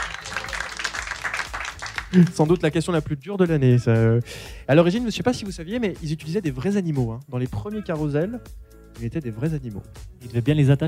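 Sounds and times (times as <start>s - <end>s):
audience applause: 0.0s - 2.6s
speech: 2.1s - 10.8s.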